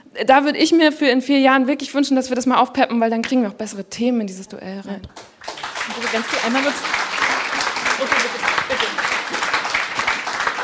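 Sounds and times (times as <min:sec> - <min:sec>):
speech: 0:00.2 - 0:05.3, 0:05.9 - 0:07.0, 0:08.0 - 0:08.5
audience applause: 0:05.2 - 0:10.6.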